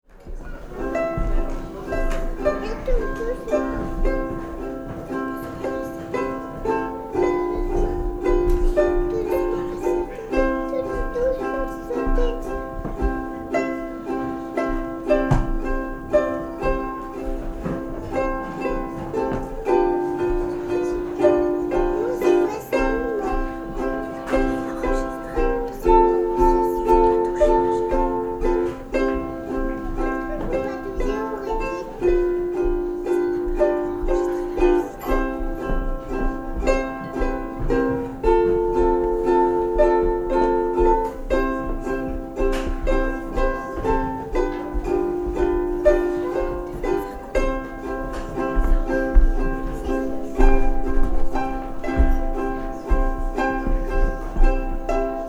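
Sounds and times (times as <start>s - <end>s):
ukulele waltz: 0.0s - 55.2s.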